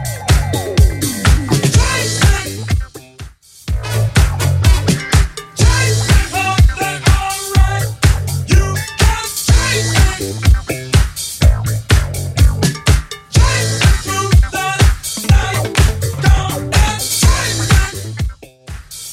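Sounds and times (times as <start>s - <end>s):
1970s style drum beat at 124 bpm: 0.0s - 19.1s.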